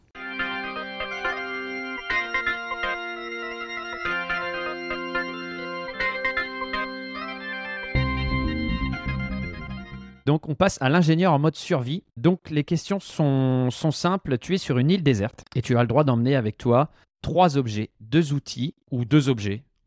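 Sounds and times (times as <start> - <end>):
show segment jingle: 0.2 - 10.1
speech: 10.3 - 19.8.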